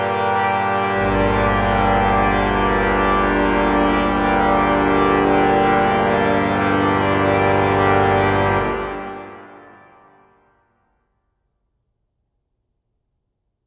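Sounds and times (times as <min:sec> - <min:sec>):
organ toccatina: 0:00.0 - 0:09.8.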